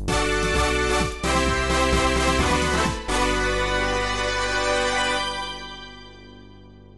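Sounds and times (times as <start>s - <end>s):
level clear game jingle: 0.1s - 6.6s.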